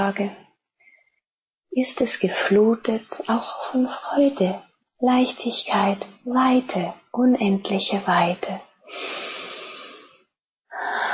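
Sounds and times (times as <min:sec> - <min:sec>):
speech: 0:00.0 - 0:00.4, 0:01.7 - 0:09.2
slow deep breathing through the nose: 0:08.9 - 0:11.1.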